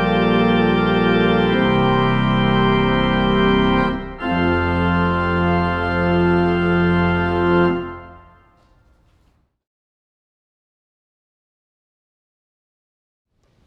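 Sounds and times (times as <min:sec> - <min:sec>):
organ pedal study postlude: 0:00.0 - 0:09.3.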